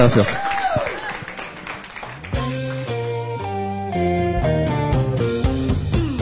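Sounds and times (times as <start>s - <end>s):
audience applause: 0.0s - 3.0s
sustained musical passage with steady held tones: 2.3s - 6.2s.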